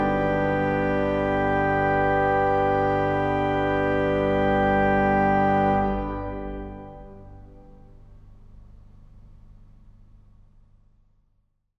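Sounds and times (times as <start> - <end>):
organ prelude: 0.0 - 8.2.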